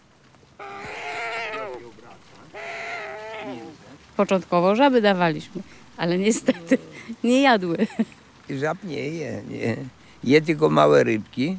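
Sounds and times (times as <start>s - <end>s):
captive bird's dinosaur-like calls at feeding: 0.5s - 4.1s
speech: 3.4s - 11.5s.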